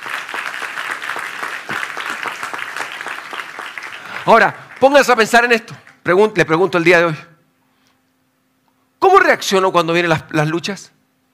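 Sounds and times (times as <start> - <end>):
audience applause: 0.0 - 6.2
speech: 4.2 - 7.3, 9.3 - 11.0.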